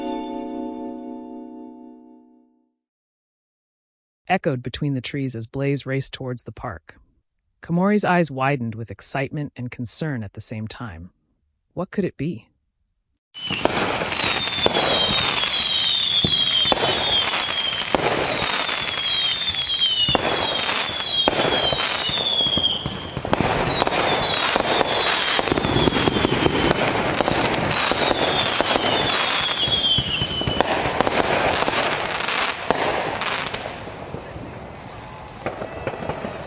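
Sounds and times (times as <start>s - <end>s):
speech: 4.3s - 11.2s, 11.8s - 12.5s, 13.3s - 14.2s
thin high whistling of rising firework shells: 13.4s - 30.8s
fireworks crackling and popping at an annual town celebration: 13.4s - 36.4s.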